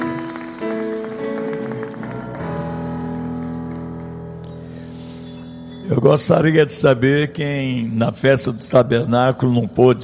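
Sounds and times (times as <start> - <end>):
audience applause: 0.0 - 4.2
speech: 5.9 - 10.0.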